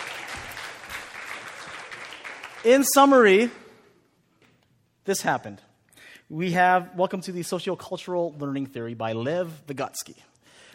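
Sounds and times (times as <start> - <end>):
round of applause from a group: 0.0 - 3.6
speech: 2.6 - 3.6, 5.1 - 5.7, 6.3 - 10.7.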